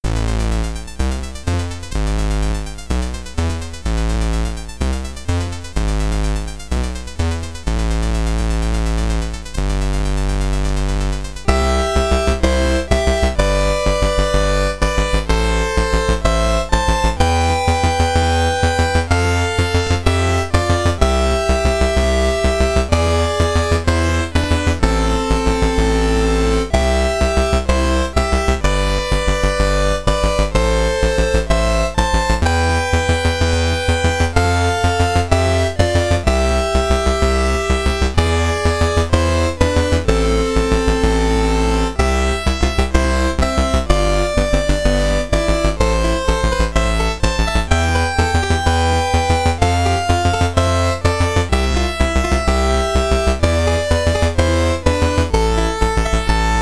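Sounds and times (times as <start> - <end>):
SID chip high score music in stereo: 0.0 - 56.6.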